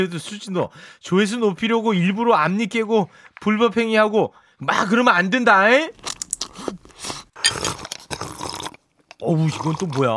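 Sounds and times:
speech: 0.0s - 7.6s, 9.2s - 10.1s
person drinking carbonated soda: 6.0s - 10.1s.

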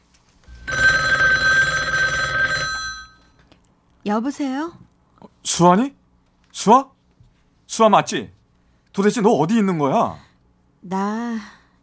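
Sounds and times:
telephone ringing on outgoing call: 0.5s - 3.4s
speech: 4.1s - 4.8s, 5.4s - 6.9s, 7.7s - 8.4s, 9.0s - 10.2s, 10.8s - 11.6s.

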